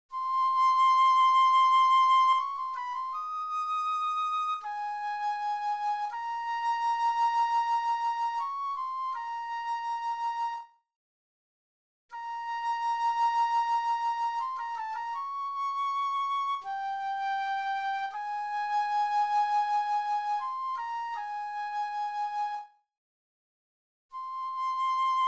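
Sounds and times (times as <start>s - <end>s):
flute: 0.1s - 10.8s, 12.1s - 22.9s, 24.1s - 25.2s.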